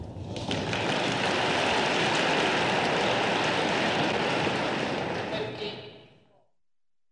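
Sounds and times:
tennis spectators applauding: 0.2s - 5.8s.

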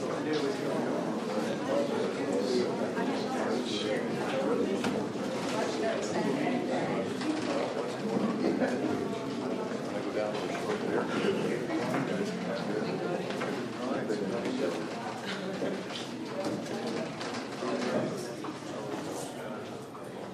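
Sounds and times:
crowd whispering in a courtroom: 0.0s - 20.1s.

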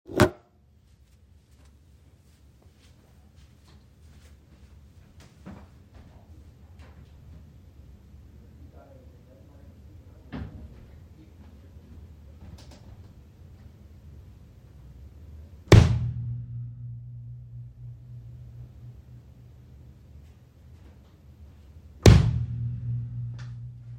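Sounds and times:
series of strikes on a barrel: 0.1s - 0.4s, 15.7s - 19.1s, 22.0s - 23.9s.

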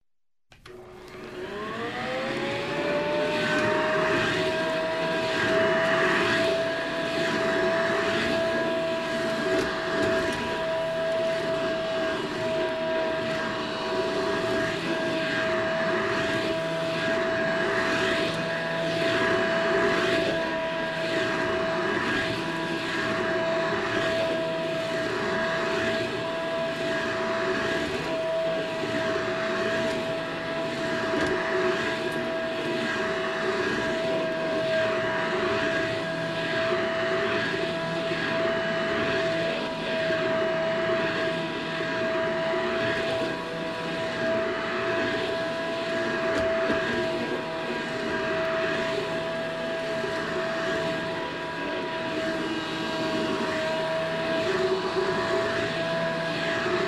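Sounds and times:
vacuum cleaner starting, running, stopping and at low speed: 0.5s - 56.8s.

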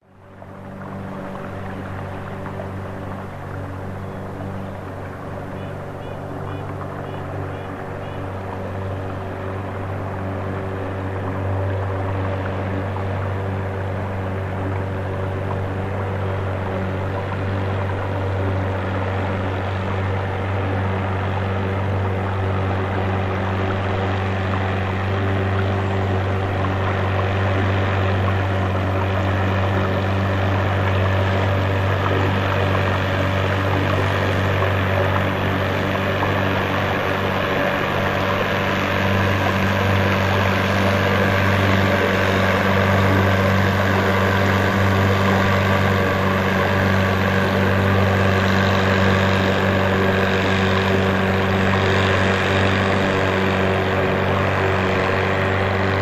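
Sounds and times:
motorboat passing by slowly: 0.0s - 56.0s.

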